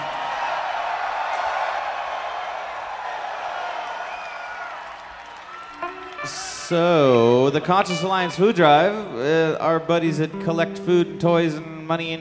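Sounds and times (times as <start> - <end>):
crowd screaming and cheering: 0.0 - 9.4
speech: 5.9 - 12.1.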